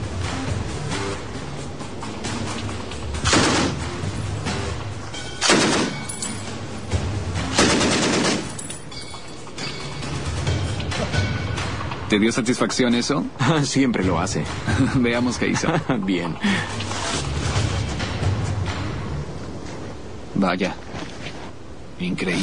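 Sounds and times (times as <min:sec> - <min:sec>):
dense continuous rumble: 0:00.0 - 0:22.4
Browning automatic rifle firing at a door: 0:03.2 - 0:03.8, 0:05.4 - 0:06.1, 0:07.5 - 0:08.6
speech: 0:12.1 - 0:16.8, 0:20.4 - 0:20.8, 0:22.0 - 0:22.4
laughter: 0:14.6 - 0:16.8.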